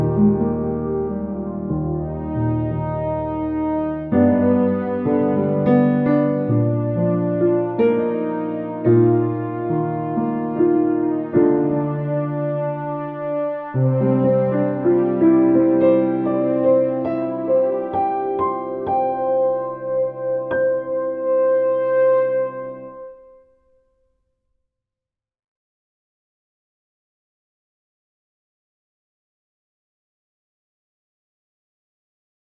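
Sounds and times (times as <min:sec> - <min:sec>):
piano music: 0:00.0 - 0:23.7.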